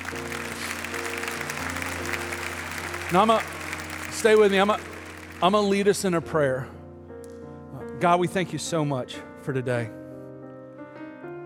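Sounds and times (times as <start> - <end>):
audience clapping: 0.0 - 6.1
speech: 3.1 - 3.6, 4.2 - 6.8, 8.0 - 10.0.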